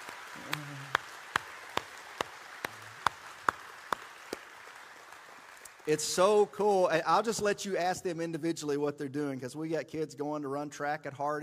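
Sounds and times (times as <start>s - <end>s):
audience round of applause: 0.0s - 6.9s
speech: 5.8s - 11.4s.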